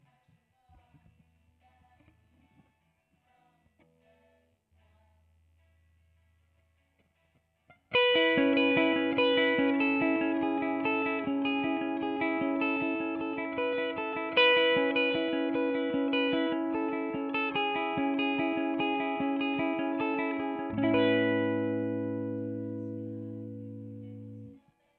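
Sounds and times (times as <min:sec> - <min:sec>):
guitar track played with a pick: 0:07.7 - 0:24.6.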